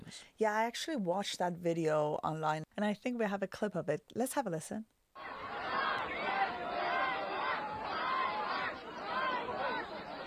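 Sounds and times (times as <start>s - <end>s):
speech: 0.1s - 5.0s
large crowd jeering and shouting shame: 5.2s - 10.2s.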